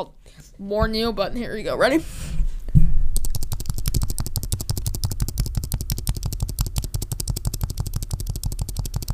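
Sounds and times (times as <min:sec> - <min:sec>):
speech: 0:00.0 - 0:02.4
fast typing on a computer keyboard: 0:03.2 - 0:09.1.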